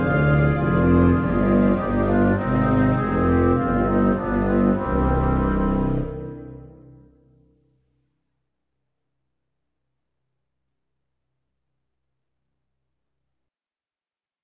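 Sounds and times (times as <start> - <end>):
instrumental music: 0.0 - 7.5.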